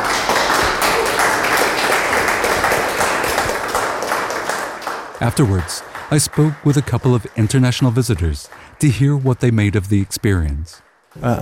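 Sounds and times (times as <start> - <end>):
warm applause from walk participants: 0.0 - 11.4
speech: 5.2 - 11.4.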